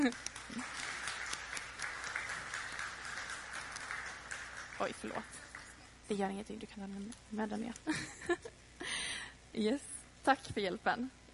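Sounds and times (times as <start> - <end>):
speech: 0.0 - 0.6, 4.8 - 5.4, 6.1 - 8.6, 9.6 - 11.3
audience applause: 0.0 - 5.9.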